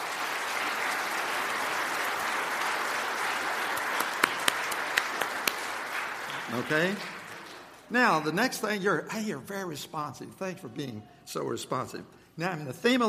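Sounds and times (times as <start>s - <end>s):
crowd applause: 0.0s - 8.6s
speech: 6.5s - 7.2s, 7.9s - 13.0s.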